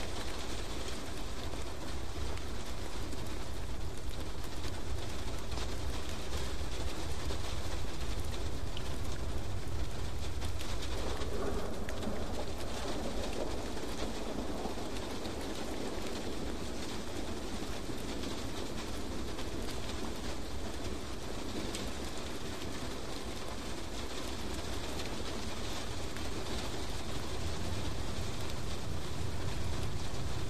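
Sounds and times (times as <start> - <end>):
rain hissing: 0.0 - 30.4
low rumbling undertone: 10.7 - 15.5.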